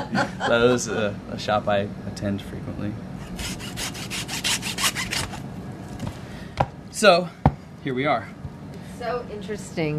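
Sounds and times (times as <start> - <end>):
laughter: 0.0 - 1.2
speech: 0.1 - 3.6, 7.0 - 8.4, 9.0 - 9.9
handsaw sawing through a pig trotter: 3.2 - 5.4.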